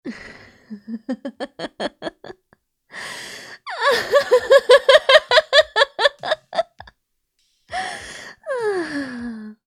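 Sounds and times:
evil laugh: 0.7 - 2.4, 3.8 - 6.9.

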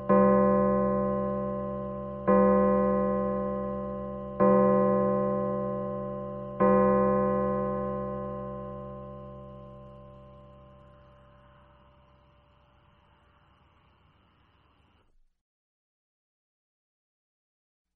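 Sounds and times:
pendulum clock striking twelve: 0.0 - 11.1.

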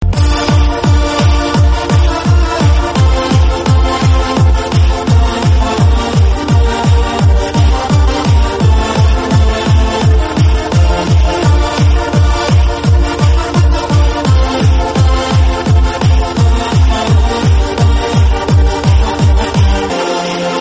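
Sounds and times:
bass: 0.0 - 20.5.

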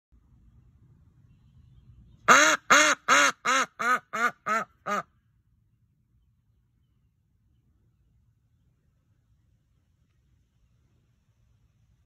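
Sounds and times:
duck laughing: 2.3 - 5.1.

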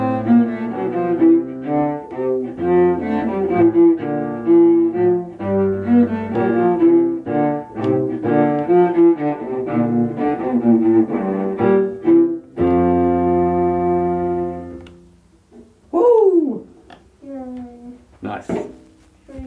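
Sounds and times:
piano and cello duet: 0.0 - 15.1.

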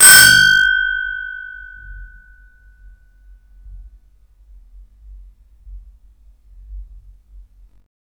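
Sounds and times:
old doorbell: 0.0 - 2.1.

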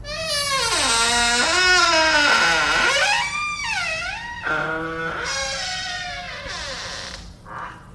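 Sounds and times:
door creaking: 0.0 - 7.9.

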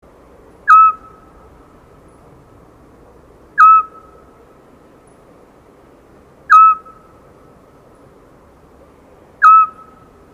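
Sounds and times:
scops owl calling: 0.6 - 1.4, 3.6 - 4.3, 6.5 - 7.2, 9.4 - 10.2.

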